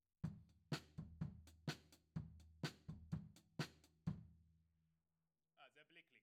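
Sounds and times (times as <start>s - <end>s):
tom drum: 0.2s - 4.2s.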